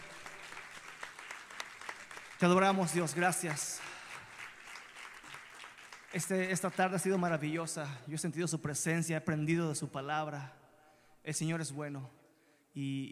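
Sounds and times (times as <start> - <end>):
audience applause: 0.0 - 6.2
speech: 2.4 - 3.9, 6.2 - 10.6, 11.2 - 13.0.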